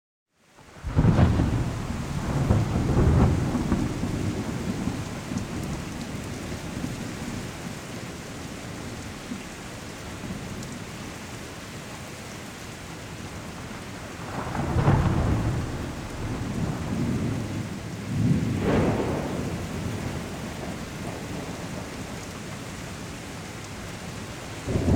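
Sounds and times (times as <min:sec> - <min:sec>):
rain: 0:00.3 - 0:24.9
thunderstorm: 0:00.7 - 0:08.4, 0:13.4 - 0:24.9.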